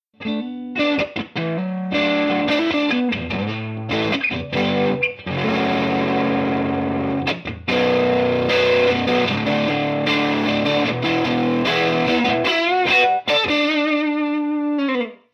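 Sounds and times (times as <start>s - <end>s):
overdriven sound: 0.2s - 15.2s.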